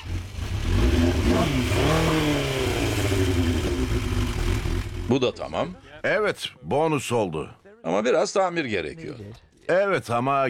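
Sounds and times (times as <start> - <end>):
motorcycle revving through Yoshimura aftermarket exhaust: 0.0 - 5.8
speech: 5.1 - 10.4.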